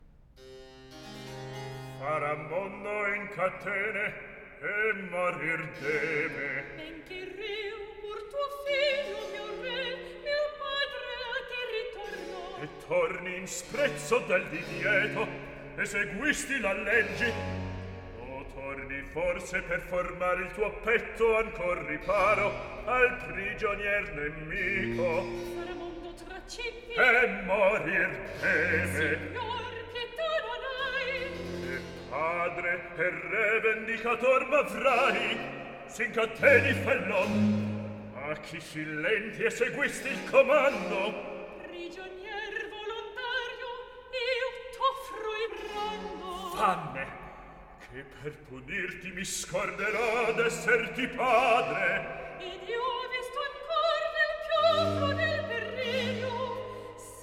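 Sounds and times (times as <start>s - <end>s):
recitative singing: 1.9s - 57.2s.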